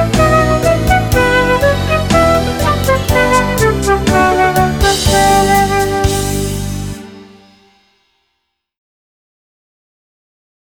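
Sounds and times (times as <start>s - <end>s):
flute playing a bourree: 0.0s - 7.8s.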